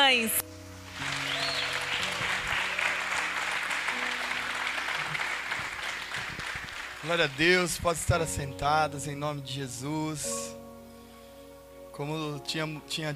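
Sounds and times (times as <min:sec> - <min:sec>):
speech: 0:00.1 - 0:00.5, 0:07.0 - 0:10.4, 0:12.0 - 0:13.1
audience applause: 0:00.9 - 0:07.8.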